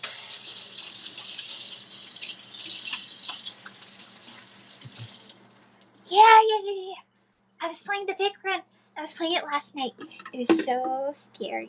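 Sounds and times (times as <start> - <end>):
water tap running while hands are washed: 0.0 - 5.6
speech: 6.1 - 7.0, 7.6 - 11.6.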